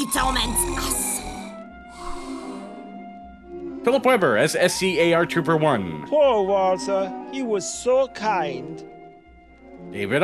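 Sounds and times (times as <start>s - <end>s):
speech: 0.0s - 1.1s, 3.8s - 8.9s, 9.9s - 10.2s
snoring: 0.6s - 2.9s.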